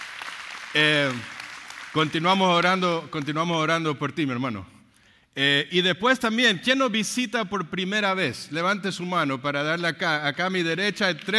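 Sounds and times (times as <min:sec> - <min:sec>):
audience applause: 0:00.0 - 0:02.9
speech: 0:00.7 - 0:01.4, 0:02.0 - 0:04.8, 0:05.4 - 0:11.3.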